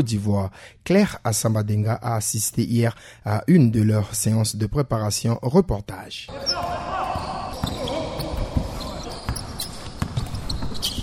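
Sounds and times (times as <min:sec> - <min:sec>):
speech: 0:00.0 - 0:06.9
basketballs bouncing on the parquet floor of a gym during team practice: 0:06.4 - 0:11.0.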